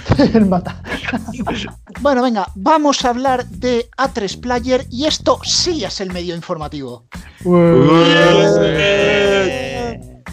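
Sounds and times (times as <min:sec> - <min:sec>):
laughter: 0:00.0 - 0:01.8, 0:07.5 - 0:10.1
speech: 0:00.2 - 0:09.6
group shouting half-heartedly: 0:07.4 - 0:10.2.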